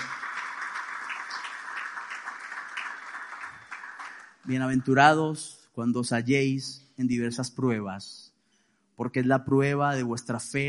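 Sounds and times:
audience applause: 0.0 - 4.9
speech: 4.4 - 8.3, 9.0 - 10.6.

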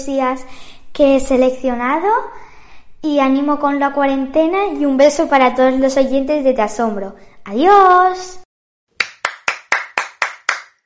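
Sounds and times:
speech: 0.0 - 2.4, 3.0 - 8.4
applause of sharp bright claps: 9.0 - 10.8.

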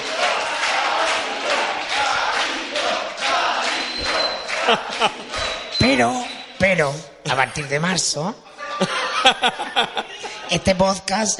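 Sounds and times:
crowd applauding and cheering: 0.0 - 6.5
laughter: 2.2 - 5.8, 8.4 - 10.7
speech: 4.7 - 5.2, 6.0 - 11.3.

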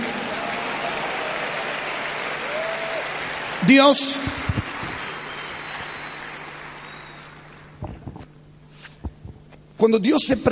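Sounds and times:
audience applauding: 0.0 - 8.3
speech: 3.6 - 4.4, 9.8 - 10.5.

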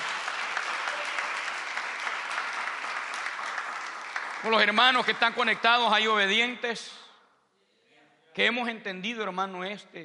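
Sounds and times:
audience applause: 0.0 - 5.8
speech: 4.4 - 7.0, 8.4 - 10.0.

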